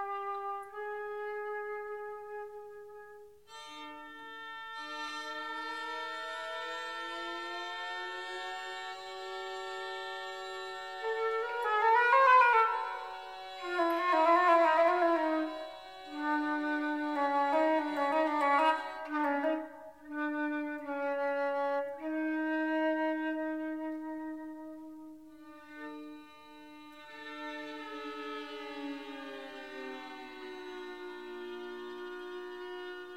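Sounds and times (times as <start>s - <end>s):
trio for flute, viola and cello: 0.0s - 33.1s.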